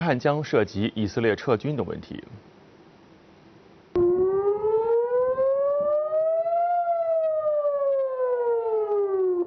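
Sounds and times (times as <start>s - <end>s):
speech: 0.1s - 2.5s
air raid warning siren: 4.0s - 9.4s.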